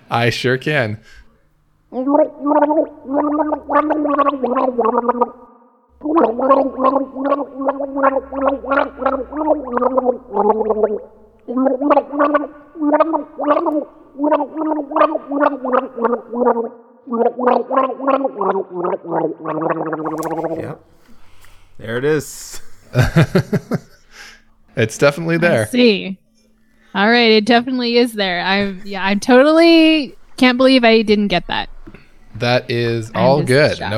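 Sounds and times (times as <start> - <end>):
speech: 0.1 - 1.2, 1.9 - 20.9, 21.8 - 23.9, 24.8 - 26.2, 26.9 - 33.9
person gargling a pop melody: 1.9 - 20.8
laughter: 22.5 - 24.0.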